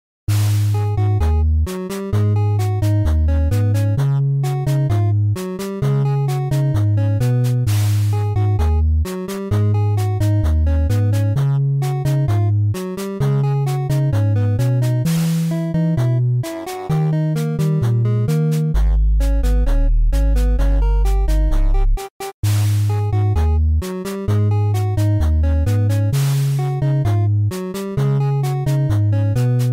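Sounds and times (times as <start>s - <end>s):
8-bit chiptune: 0.3s - 29.7s.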